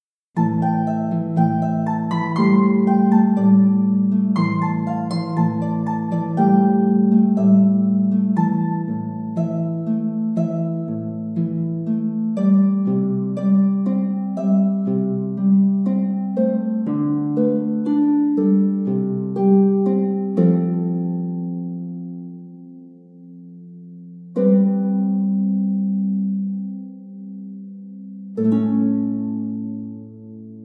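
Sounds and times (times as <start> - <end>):
open world harp music: 0.4 - 30.6.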